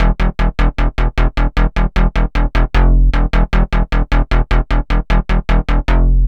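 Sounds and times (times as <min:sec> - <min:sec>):
psycho bass: 0:00.0 - 0:06.2.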